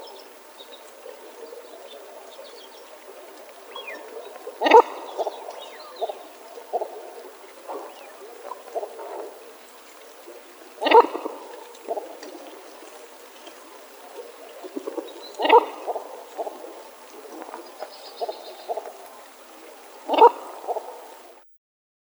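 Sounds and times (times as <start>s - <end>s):
Baikal teal low clucking note: 4.4s - 8.0s, 10.8s - 12.2s, 14.9s - 16.6s, 20.0s - 21.4s.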